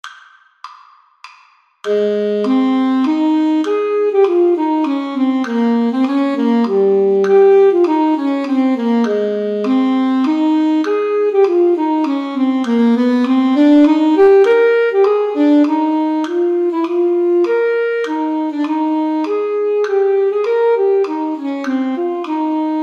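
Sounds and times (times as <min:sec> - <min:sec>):
alto saxophone: 0:01.9 - 0:22.8.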